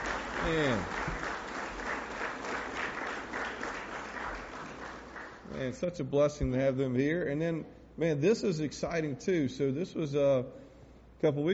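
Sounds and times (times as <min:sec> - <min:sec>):
audience applause: 0:00.0 - 0:05.6
speech: 0:00.4 - 0:01.2, 0:05.6 - 0:10.6, 0:11.2 - 0:11.5.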